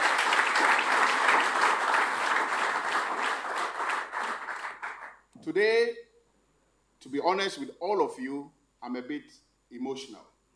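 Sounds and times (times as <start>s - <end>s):
sustained applause from a sizable audience: 0.0s - 5.2s
speech: 5.5s - 6.0s, 7.0s - 10.3s.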